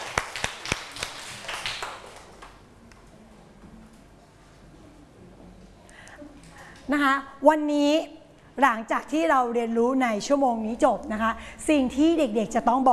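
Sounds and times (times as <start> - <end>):
classroom applause, children clapping: 0.0 - 2.6
speech: 6.9 - 12.9.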